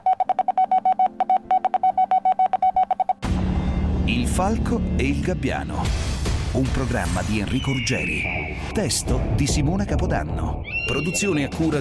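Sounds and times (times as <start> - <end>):
Morse code beeps: 0.0 - 3.2
speech: 4.4 - 11.7.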